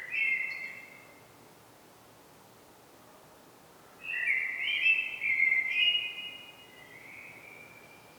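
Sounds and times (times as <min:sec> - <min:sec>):
common blackbird Turdus merula song: 0:00.0 - 0:01.2, 0:04.0 - 0:08.1.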